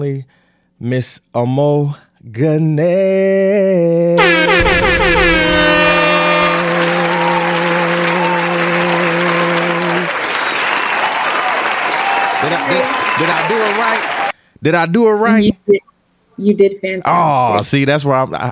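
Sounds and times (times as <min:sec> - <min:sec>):
speech: 0:00.0 - 0:05.7, 0:12.5 - 0:18.5
sustained brassy horn-like tone: 0:04.2 - 0:10.2
audience applause welcoming a guest onto a music talk show: 0:04.6 - 0:14.4.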